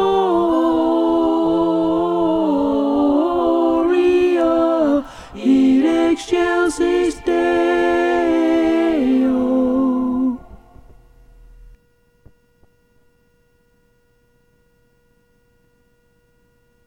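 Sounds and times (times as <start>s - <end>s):
mezzo choir singing a carol in harmony: 0.0s - 10.8s.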